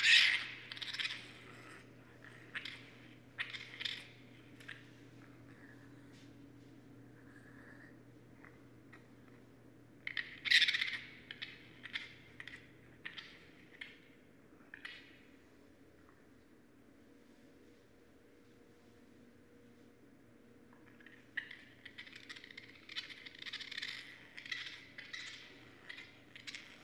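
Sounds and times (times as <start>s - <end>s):
raccoon breathy and squeaky calls: 0.0s - 4.8s, 10.1s - 14.0s, 21.0s - 26.8s.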